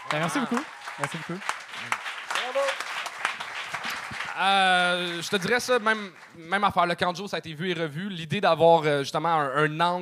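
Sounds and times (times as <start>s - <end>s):
audience applause: 0.0s - 6.5s
speech: 0.1s - 2.8s, 4.4s - 10.0s.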